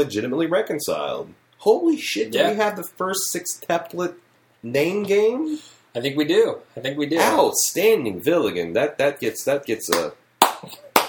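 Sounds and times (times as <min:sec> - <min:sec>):
speech: 0:00.0 - 0:10.8
slow handclaps: 0:09.9 - 0:11.0.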